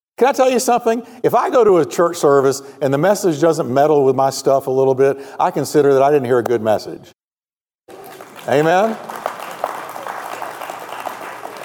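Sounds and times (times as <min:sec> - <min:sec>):
speech: 0:00.2 - 0:07.2, 0:08.5 - 0:09.1
a few people clapping: 0:07.9 - 0:11.6.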